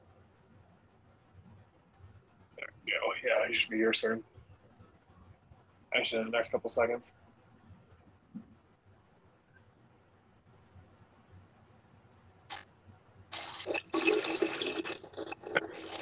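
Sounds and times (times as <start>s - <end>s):
speech: 3.2s - 4.4s, 6.0s - 7.2s
chicken frying in a pan: 13.3s - 16.0s.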